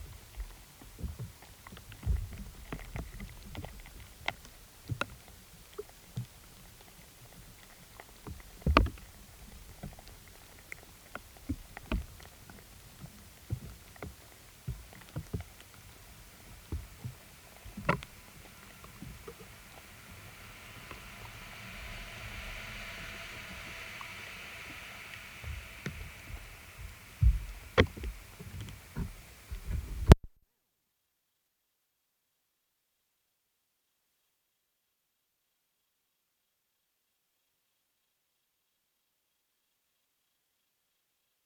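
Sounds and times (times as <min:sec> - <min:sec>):
acoustic emissions of Pinus sylvestris: 0:00.0 - 0:30.2.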